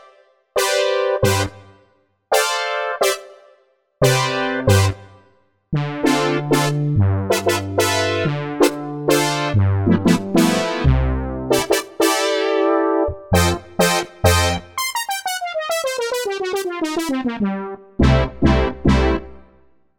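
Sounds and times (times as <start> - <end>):
Pulse Matrix synth brass: 0.6 - 1.6, 4.0 - 5.0, 5.8 - 19.4.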